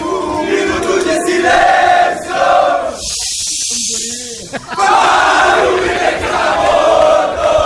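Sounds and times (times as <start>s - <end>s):
large crowd of football fans singing a chant: 0.0s - 3.0s, 4.7s - 7.6s
harsh hissing noise: 2.7s - 4.8s
laughter: 3.0s - 5.8s.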